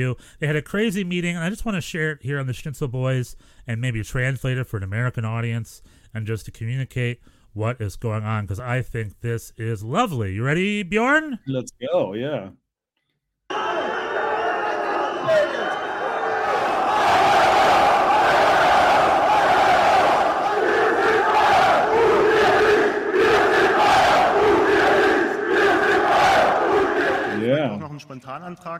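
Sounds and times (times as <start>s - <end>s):
speech: 0.0s - 12.6s, 13.5s - 13.9s, 28.0s - 28.7s
Bayern Munich football fans chanting at the club board: 13.5s - 27.8s.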